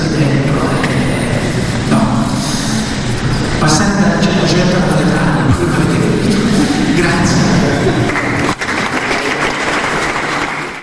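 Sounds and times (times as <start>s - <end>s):
laughter: 0.9s - 10.8s
speech: 3.7s - 5.0s
audience applause: 6.2s - 10.8s.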